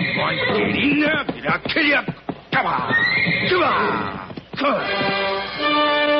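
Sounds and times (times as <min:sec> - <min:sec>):
horses whinnying: 0:00.0 - 0:01.2, 0:02.5 - 0:05.8
faint hoof clops: 0:00.0 - 0:06.1
speech: 0:00.2 - 0:05.8.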